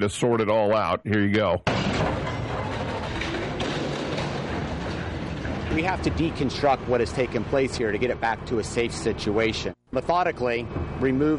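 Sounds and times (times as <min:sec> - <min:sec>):
speech: 0:00.0 - 0:02.2, 0:05.8 - 0:11.3
crane collapsing and smashing: 0:01.7 - 0:08.5.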